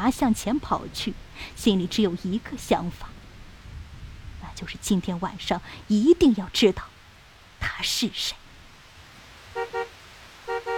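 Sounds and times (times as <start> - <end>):
speech: 0.0 - 3.1, 4.6 - 6.9, 7.6 - 8.4
car horn honking: 9.5 - 10.7.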